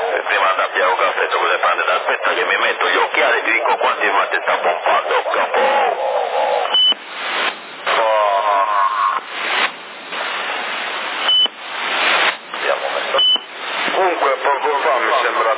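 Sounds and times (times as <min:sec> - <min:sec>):
voices over CB radio: 0:00.0 - 0:07.0, 0:07.9 - 0:09.6, 0:12.5 - 0:15.5
CB radio static in Sassari: 0:00.0 - 0:15.5.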